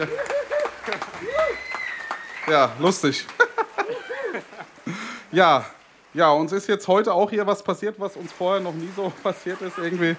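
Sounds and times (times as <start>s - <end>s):
speech: 0.0s - 0.3s, 2.5s - 3.4s, 5.3s - 10.1s
voices and laughter: 0.0s - 1.5s, 3.1s - 5.3s, 9.2s - 10.1s
people clapping: 0.0s - 4.9s, 8.4s - 10.1s.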